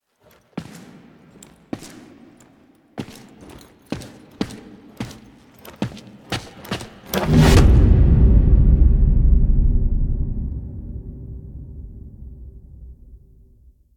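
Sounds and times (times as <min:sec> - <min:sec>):
cinematic mech footsteps: 0:00.0 - 0:13.9.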